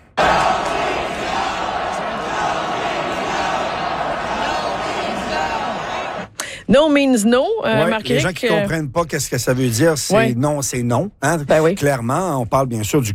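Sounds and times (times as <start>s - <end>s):
sports crowd cheering: 0.0s - 6.4s
speech: 6.7s - 13.1s.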